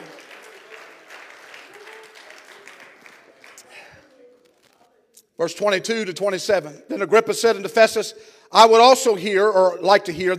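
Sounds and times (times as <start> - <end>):
audience clapping hands: 0.0 - 4.6
speech: 5.4 - 10.3.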